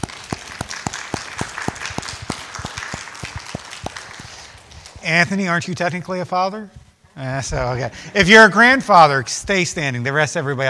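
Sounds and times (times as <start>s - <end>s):
audience applause: 0.0s - 5.1s
speech: 5.0s - 10.6s.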